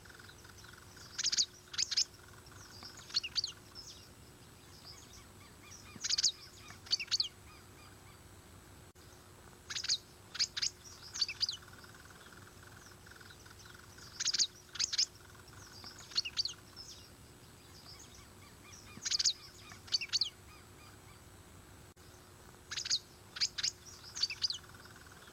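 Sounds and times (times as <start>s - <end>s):
dragon bird song high chirps: 0.0s - 8.3s, 9.6s - 21.3s, 22.7s - 25.3s.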